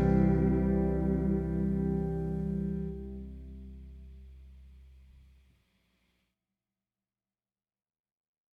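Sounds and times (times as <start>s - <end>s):
major triad vamp: 0.0s - 4.0s.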